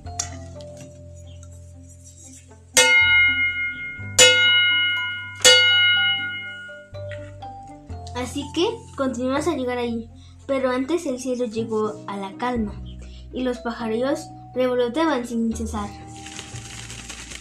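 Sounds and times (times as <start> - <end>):
distant village church bells ringing: 2.8 - 7.0
speech: 8.2 - 16.0.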